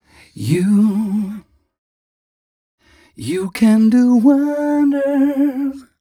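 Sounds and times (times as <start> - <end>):
vocals: 0.0 - 1.7, 2.8 - 5.9.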